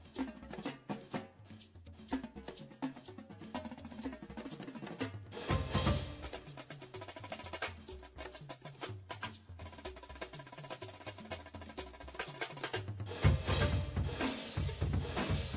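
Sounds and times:
music: 0.0 - 15.5
cymbals: 5.3 - 10.3, 11.0 - 15.5.

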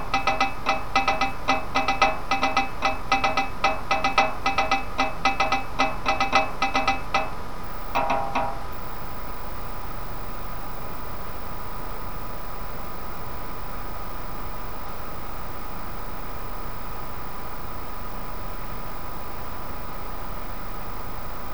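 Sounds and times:
drumline: 0.0 - 7.4, 8.0 - 8.7.

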